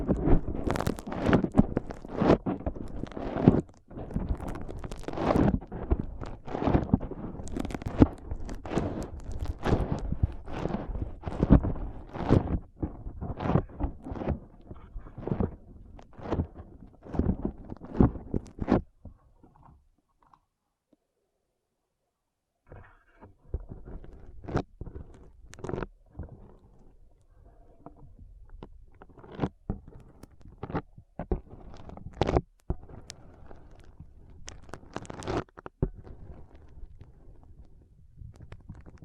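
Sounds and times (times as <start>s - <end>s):
foam pressed and rubbed in an ASMR brain massage: 0.0s - 18.9s, 29.0s - 37.4s.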